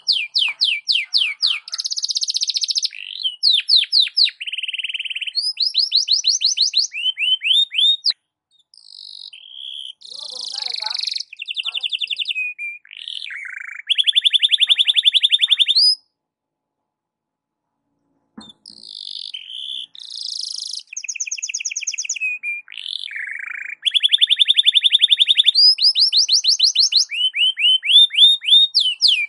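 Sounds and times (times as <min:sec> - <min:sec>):
canary singing: 0:00.0 - 0:16.1, 0:18.4 - 0:29.2.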